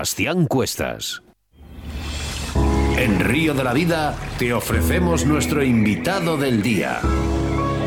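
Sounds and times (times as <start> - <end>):
speech: 0.0 - 1.3, 3.0 - 7.3
radio show intro jingle: 0.0 - 7.7.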